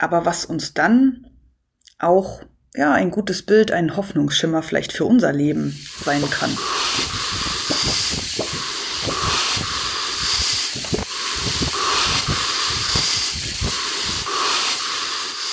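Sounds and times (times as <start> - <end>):
speech: 0.0 - 1.3, 2.0 - 8.2
autumn wind blowing: 5.6 - 15.5.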